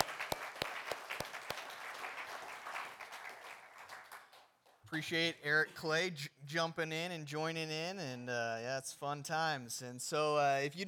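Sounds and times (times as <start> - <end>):
applause: 0.0 - 4.9
speech: 4.9 - 10.8.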